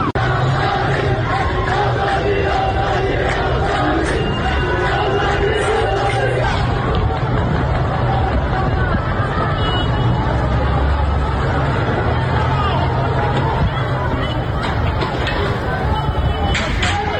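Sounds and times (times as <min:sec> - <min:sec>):
protesters shouting at a street demonstration in Iran: 0:00.2 - 0:17.1.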